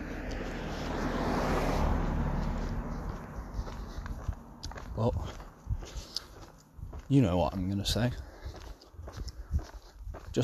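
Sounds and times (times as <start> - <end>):
car passing by: 0.0 - 6.6
speech: 5.0 - 5.4, 7.1 - 8.3.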